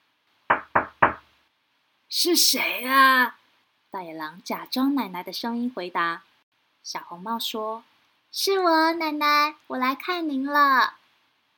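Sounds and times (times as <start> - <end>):
knocking on a door: 0.5 - 1.3
speech: 2.1 - 11.0.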